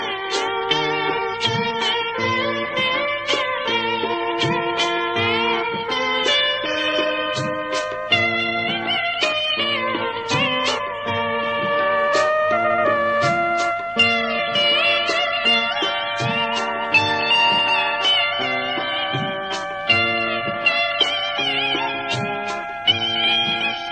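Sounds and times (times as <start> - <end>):
sky tone ringtone: 0.0 - 23.8.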